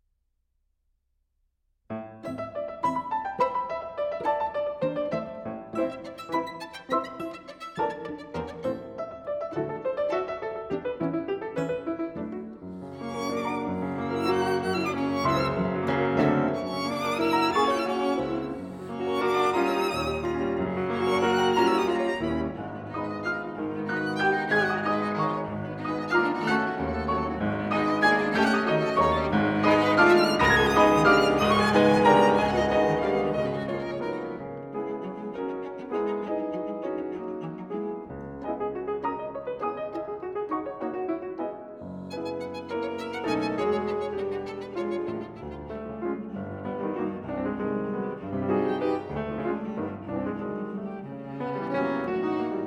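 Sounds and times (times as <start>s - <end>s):
piano trio: 1.9s - 52.6s.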